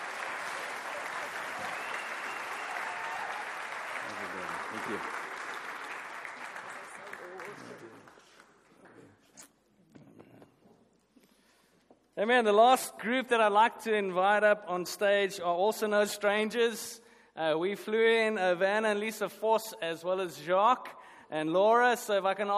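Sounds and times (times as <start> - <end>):
audience applause: 0.0 - 8.4
speech: 4.8 - 5.2, 12.2 - 22.5.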